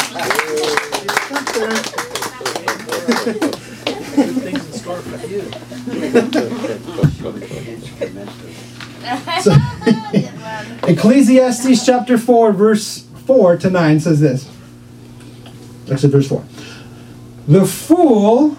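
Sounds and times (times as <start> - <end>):
audience applause: 0.0 - 6.6
laughter: 0.0 - 12.2
speech: 3.2 - 3.6, 5.0 - 9.7, 10.9 - 14.6, 15.9 - 16.5, 17.5 - 18.5.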